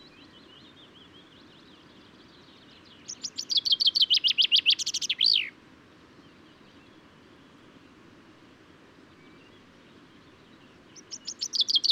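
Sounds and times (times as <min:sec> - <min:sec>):
common chaffinch singing: 0:00.0 - 0:05.5, 0:09.1 - 0:11.8.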